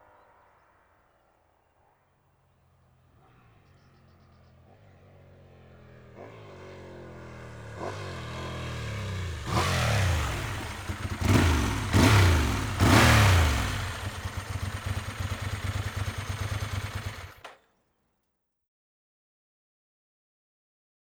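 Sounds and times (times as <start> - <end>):
Ducati 748 motorcycle engine: 2.6 - 17.6.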